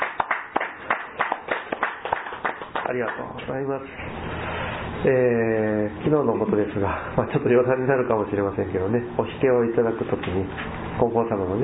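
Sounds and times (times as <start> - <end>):
church congregation clapping in celebration: 0.0 - 3.4
speech: 2.9 - 4.2, 5.0 - 11.6.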